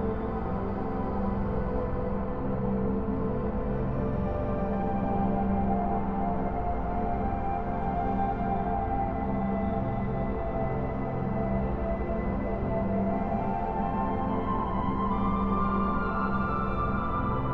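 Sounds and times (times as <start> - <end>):
ambient soundscape flute: 0.0 - 17.5.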